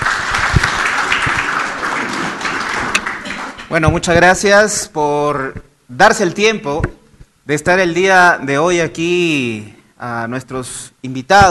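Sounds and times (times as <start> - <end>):
audience applause: 0.0 - 3.7
speech: 3.7 - 11.5.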